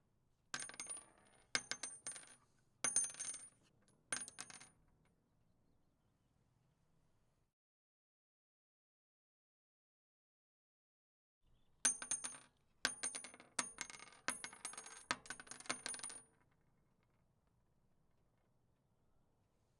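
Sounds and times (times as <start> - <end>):
tank ammunition dropping on wood: 0.6 - 4.7, 11.9 - 16.4.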